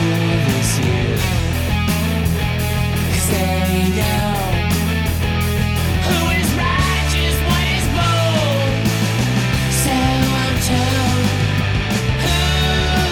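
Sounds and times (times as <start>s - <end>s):
layered low-pass filtered tone: 0.0s - 13.1s.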